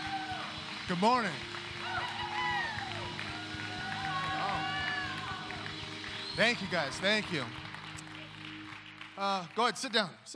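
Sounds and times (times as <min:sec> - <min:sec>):
crowd whoops and shouts: 0:00.0 - 0:01.0, 0:01.7 - 0:07.4
audience applauding a speaker: 0:00.0 - 0:10.3
speech: 0:00.9 - 0:01.5, 0:06.4 - 0:07.6, 0:09.2 - 0:10.3.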